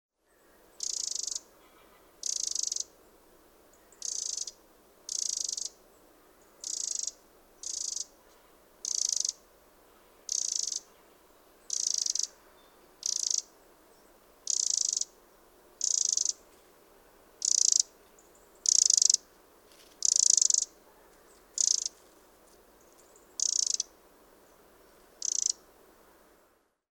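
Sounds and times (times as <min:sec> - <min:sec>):
background hiss: 0:00.2 - 0:26.9
Eurasian wren rasping rattle calls: 0:00.8 - 0:01.5, 0:02.2 - 0:02.9, 0:03.9 - 0:05.8, 0:06.6 - 0:08.1, 0:08.8 - 0:09.4, 0:10.3 - 0:10.9, 0:11.6 - 0:12.4, 0:13.0 - 0:13.5, 0:14.4 - 0:15.2, 0:15.8 - 0:16.4, 0:17.4 - 0:19.2, 0:20.0 - 0:20.8, 0:21.5 - 0:22.0, 0:23.2 - 0:23.9, 0:25.2 - 0:25.6.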